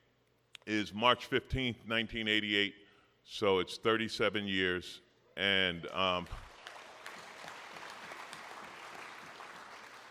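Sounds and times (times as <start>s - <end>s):
speech: 0.7s - 6.4s
audience applause: 6.4s - 10.0s.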